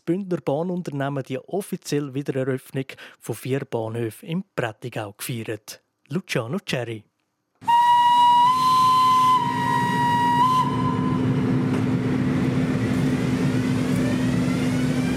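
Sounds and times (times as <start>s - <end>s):
speech: 0.1s - 7.8s
vintage train whistle departing station: 7.6s - 12.4s, 13.1s - 15.1s.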